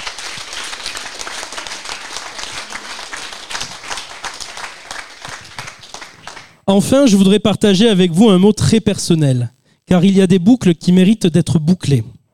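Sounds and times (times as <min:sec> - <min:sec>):
crowd applauding: 0:00.0 - 0:06.6
speech: 0:06.7 - 0:12.2.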